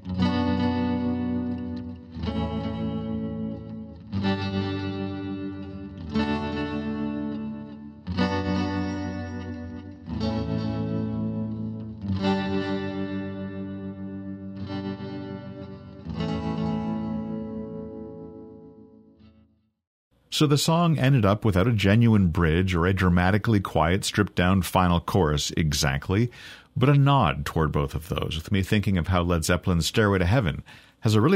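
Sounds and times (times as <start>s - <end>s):
clean electric guitar with vintage amp tremolo: 0.0s - 19.4s
speech: 20.4s - 31.3s.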